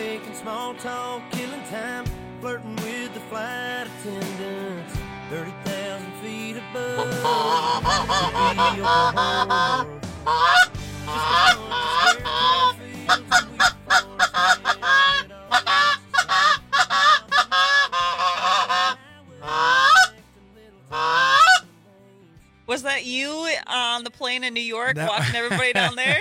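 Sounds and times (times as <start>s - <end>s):
speech: 0.4s - 5.5s, 6.2s - 11.8s, 22.8s - 26.2s
flock of geese honking: 7.0s - 20.2s, 20.9s - 21.6s
laughter: 24.8s - 26.2s.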